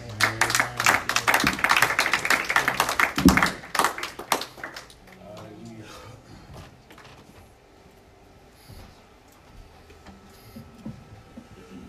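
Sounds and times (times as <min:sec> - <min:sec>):
audience clapping hands: 0:00.0 - 0:05.7.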